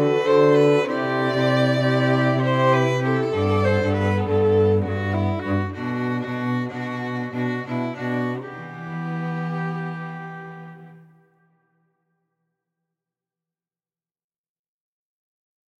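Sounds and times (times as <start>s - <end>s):
quartet playing: 0.0s - 11.1s.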